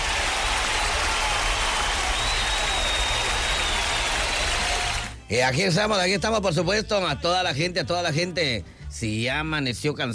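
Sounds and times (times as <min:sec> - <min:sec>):
applause: 0:00.0 - 0:05.2
speech: 0:05.3 - 0:10.1.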